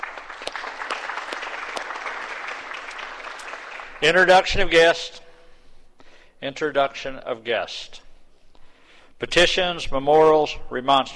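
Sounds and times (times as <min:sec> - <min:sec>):
applause in a senate chamber: 0:00.0 - 0:04.2
speech: 0:04.0 - 0:05.2, 0:06.4 - 0:08.0, 0:09.2 - 0:11.1.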